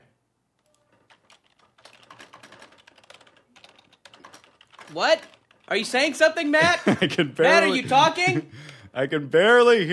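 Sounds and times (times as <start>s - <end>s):
rapid typing on a computer keyboard: 0.6s - 6.3s
speech: 4.9s - 9.9s
laughter: 6.5s - 8.7s.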